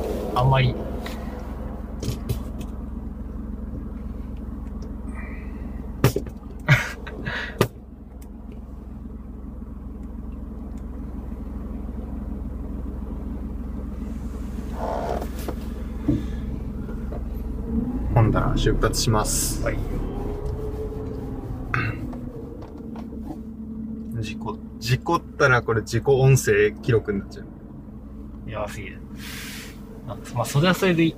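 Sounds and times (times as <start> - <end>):
car driving, interior road noise: 0.0 - 31.1
speech: 0.4 - 1.2, 18.6 - 20.0, 25.1 - 27.5, 28.6 - 29.4, 30.1 - 31.1
laughter: 6.7 - 7.6.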